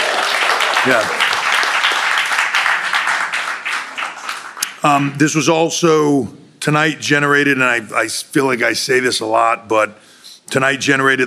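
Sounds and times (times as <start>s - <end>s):
golf clap from several people: 0.0s - 4.8s
speech: 0.8s - 1.2s, 4.8s - 11.2s.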